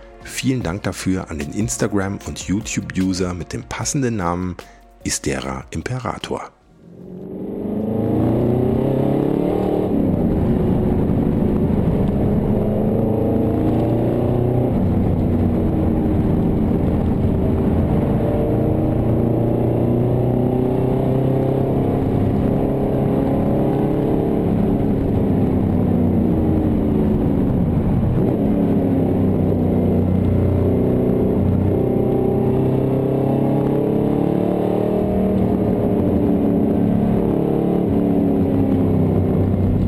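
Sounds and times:
speech: 0.3s - 6.6s
AMG M117 four-valve race car engine on the Nordschleife: 6.8s - 39.8s.

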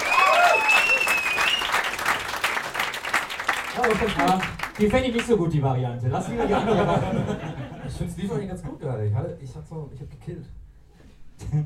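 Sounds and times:
applause: 0.0s - 5.4s
speech: 3.8s - 10.6s, 11.4s - 11.6s
laughter: 6.1s - 8.1s.

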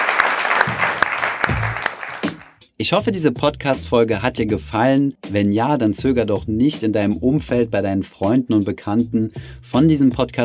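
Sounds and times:
applause: 0.0s - 2.6s
speech: 2.8s - 10.4s.

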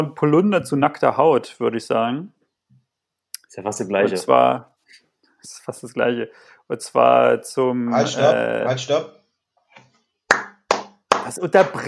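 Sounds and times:
speech: 0.0s - 2.4s, 3.5s - 9.2s, 11.3s - 11.8s
sharp hand claps: 10.3s - 11.8s.

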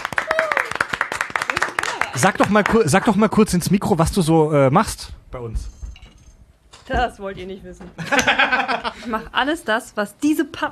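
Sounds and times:
small group clapping: 0.0s - 3.6s
person cheering: 0.2s - 0.8s
speech: 2.2s - 5.7s, 6.9s - 10.6s
laughter: 8.0s - 9.3s.

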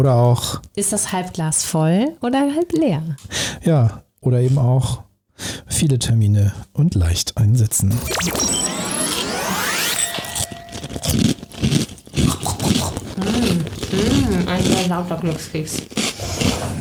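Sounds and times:
speech: 0.0s - 8.6s, 14.8s - 16.4s
brief vocal sounds: 7.7s - 16.7s
someone biting and chewing a crunchy fortune cookie: 10.8s - 16.7s.

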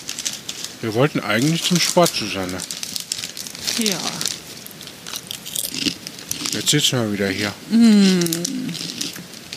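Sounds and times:
people crunching on potato chips: 0.0s - 9.5s
speech: 0.8s - 2.8s, 3.8s - 4.3s, 5.8s - 9.0s.

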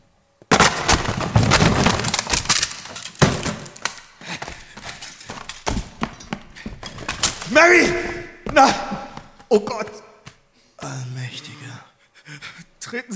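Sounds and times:
rattling splintering clatter: 0.5s - 7.6s
wooden door being forced open: 0.5s - 10.0s
thudding impacts: 0.5s - 10.4s
speech: 7.5s - 8.8s, 9.5s - 10.0s, 12.9s - 13.1s.

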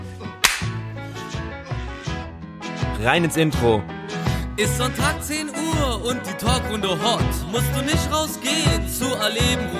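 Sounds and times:
hand clap: 0.4s - 0.8s
speech: 3.0s - 3.9s, 4.6s - 9.7s.

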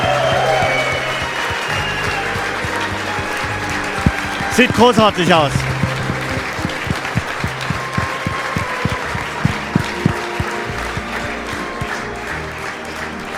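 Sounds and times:
audience applause: 0.0s - 13.3s
speech: 4.6s - 5.6s.

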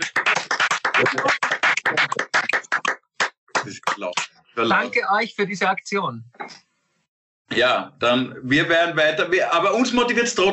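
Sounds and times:
audience applause: 0.0s - 3.0s
speech: 1.0s - 1.4s, 4.1s - 6.6s, 7.5s - 10.5s.

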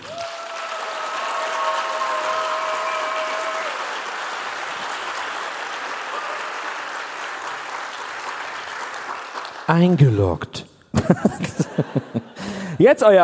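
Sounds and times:
audience applause: 0.0s - 10.0s
speech: 9.7s - 13.2s
laughter: 11.0s - 12.6s.

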